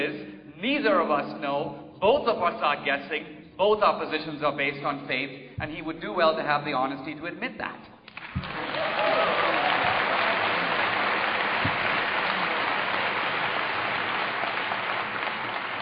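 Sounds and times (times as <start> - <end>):
speech: 0.0 - 9.0
audience clapping: 8.1 - 15.8.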